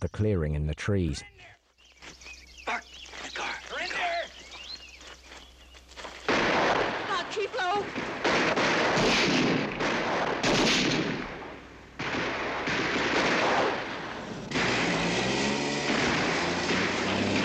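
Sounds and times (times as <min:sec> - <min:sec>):
speech: 0:00.0 - 0:02.2
gunfire in a police shootout among trees: 0:06.3 - 0:17.4.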